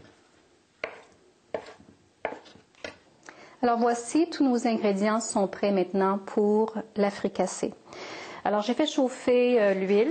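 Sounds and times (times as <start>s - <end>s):
knife chopping tofu into strips on a cutting board: 0.8s - 3.0s
speech: 3.6s - 7.8s, 8.4s - 10.0s.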